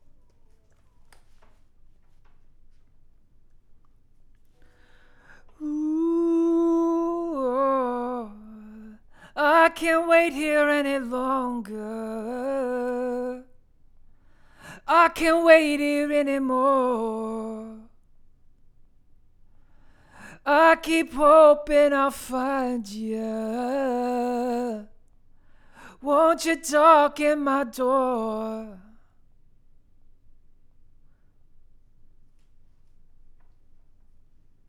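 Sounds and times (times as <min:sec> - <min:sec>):
vocals: 0:04.6 - 0:18.1, 0:19.7 - 0:29.2.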